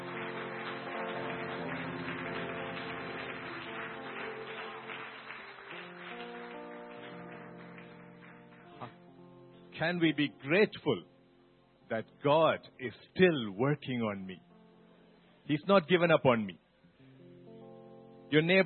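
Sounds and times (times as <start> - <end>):
audience clapping: 0.0 - 9.4
sustained chord music: 0.0 - 16.5
speech: 9.8 - 11.1, 11.9 - 14.5, 15.5 - 16.6, 18.3 - 18.6.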